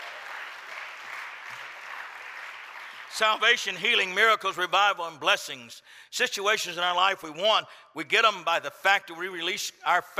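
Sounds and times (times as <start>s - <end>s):
audience clapping hands: 0.0s - 3.8s
speech: 3.2s - 10.1s.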